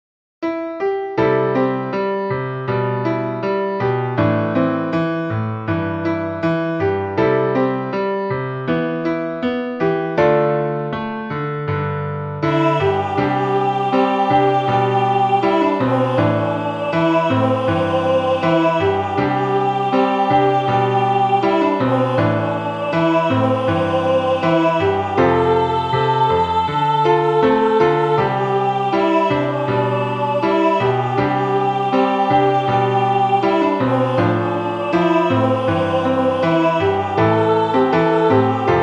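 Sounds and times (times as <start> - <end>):
solo piano: 0.4 - 38.8.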